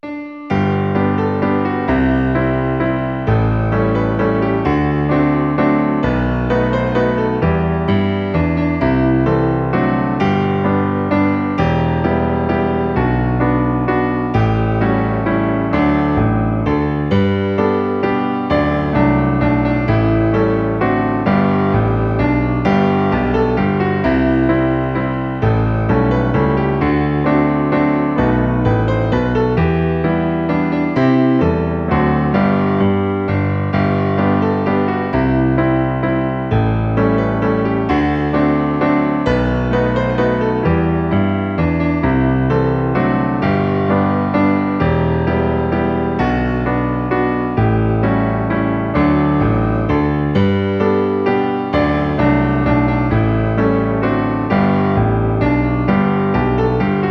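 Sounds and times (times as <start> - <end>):
piano: 0.0 - 57.1.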